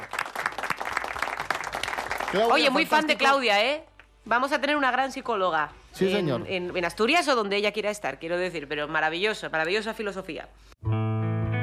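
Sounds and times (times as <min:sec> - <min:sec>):
group applause: 0:00.0 - 0:03.4
speech: 0:02.3 - 0:11.0.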